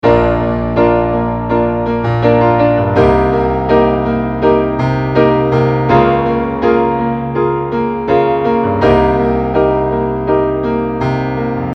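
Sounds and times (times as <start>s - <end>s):
piano: 0.0s - 11.7s.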